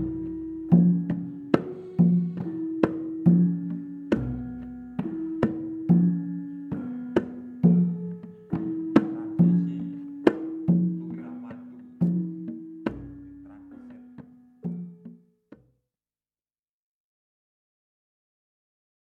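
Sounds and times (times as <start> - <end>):
music example: 0.0 - 15.2.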